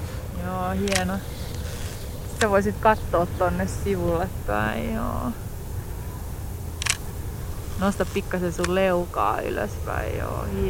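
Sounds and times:
quiet hissy background: 0.0s - 10.6s
speech: 0.7s - 1.4s, 2.4s - 5.5s, 7.8s - 10.6s
camera shutter click during a portrait photo shoot: 6.8s - 7.0s.

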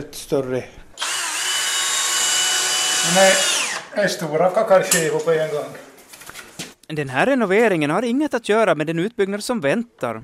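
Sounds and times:
speech: 0.0s - 0.8s, 3.0s - 5.9s, 6.9s - 10.2s
floor sanding machine working on the floor of a large dining and dance hall: 1.0s - 3.9s.

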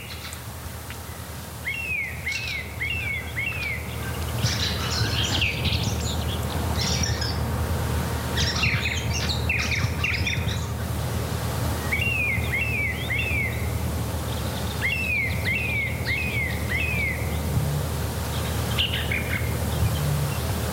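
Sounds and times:
song thrush singing: 0.0s - 20.7s
low rumble: 2.6s - 20.7s.

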